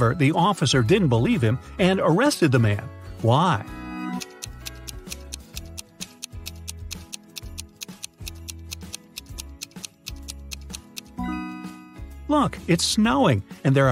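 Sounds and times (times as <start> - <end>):
speech: 0.0 - 3.8, 12.4 - 13.8
throbbing bass line and tense synth tones: 0.0 - 13.8
countdown timer ticking: 4.2 - 11.2.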